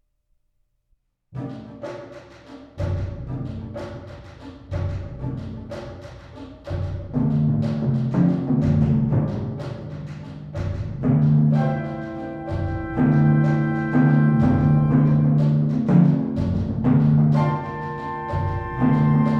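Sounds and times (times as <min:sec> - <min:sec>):
Afro-Cuban timpani concerto: 0:01.4 - 0:19.3.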